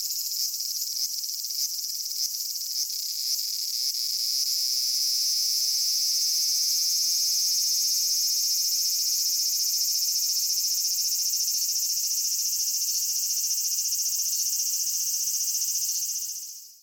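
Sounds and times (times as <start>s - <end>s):
large brown cicada song: 0.0s - 16.8s.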